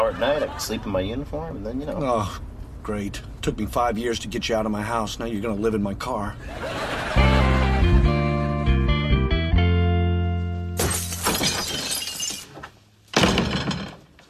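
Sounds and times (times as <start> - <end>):
laughter: 0.0 - 1.0, 6.4 - 7.9
speech: 0.1 - 7.5
low steady musical tones: 7.2 - 10.8
window glass shattering: 10.8 - 14.2.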